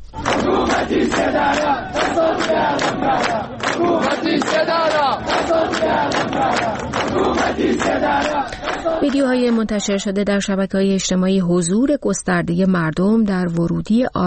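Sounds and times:
large crowd chanting anti-government slogans at a funeral ceremony in Saqqez: 0.0 - 10.0
speech: 0.8 - 14.2.

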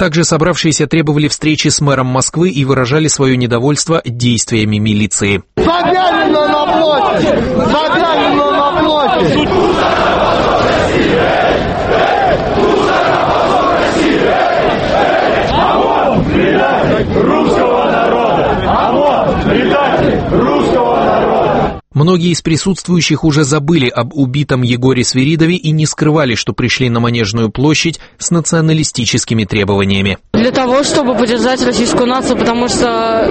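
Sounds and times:
speech: 0.0 - 11.8, 22.0 - 33.2
crowd shouting slogans: 5.6 - 21.8, 30.4 - 33.2.

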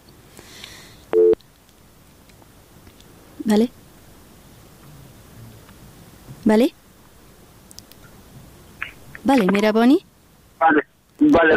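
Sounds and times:
hiss: 0.0 - 11.5
phone busy tone beep after a call is cut off: 1.2 - 1.4
speech: 3.5 - 3.8, 6.5 - 6.8, 9.3 - 11.5.

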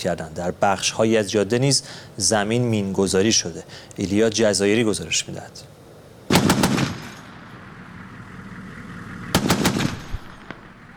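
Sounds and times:
speech: 0.0 - 5.8
exchange of gunfire: 6.3 - 7.4, 9.4 - 10.9.

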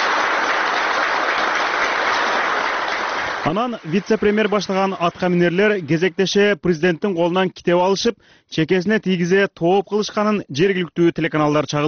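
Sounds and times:
prolonged applause at a security council meeting after the Turkmen president presents his book: 0.0 - 6.2
speech: 3.4 - 11.8.

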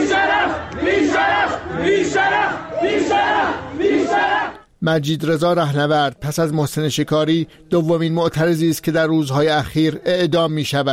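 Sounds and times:
crowd of mourners chanting in protest at a mosque closed by security forces: 0.0 - 4.7
speech: 4.8 - 10.9.

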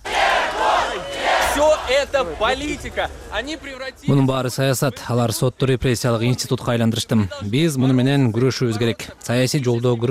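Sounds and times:
crowd chanting outside a courthouse: 0.0 - 4.3
speech: 1.9 - 10.0.

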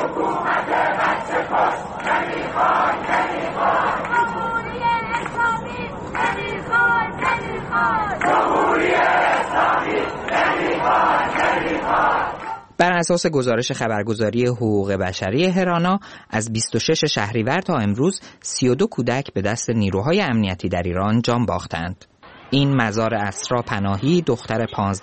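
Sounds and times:
crowd of protesters chanting slogans against dictatorship in Ekbatan, Iran: 0.0 - 12.7
speech: 12.8 - 25.0.

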